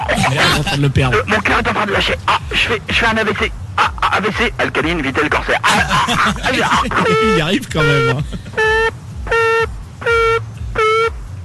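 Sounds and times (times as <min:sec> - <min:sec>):
laughter: 0:00.0 - 0:01.2, 0:05.5 - 0:08.7
low rumble: 0:00.0 - 0:11.4
speech: 0:00.3 - 0:03.6, 0:04.2 - 0:09.0
voice imitating a phone ringtone: 0:05.7 - 0:11.2.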